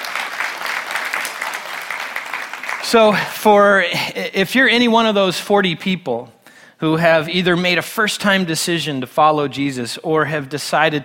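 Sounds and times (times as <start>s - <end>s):
crowd clapping: 0.0s - 3.4s
speech: 2.9s - 11.0s.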